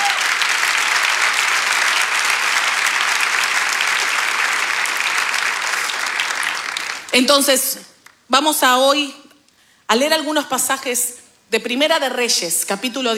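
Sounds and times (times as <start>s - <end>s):
audience applauding: 0.0s - 8.2s
speech: 7.1s - 9.2s, 9.9s - 13.1s.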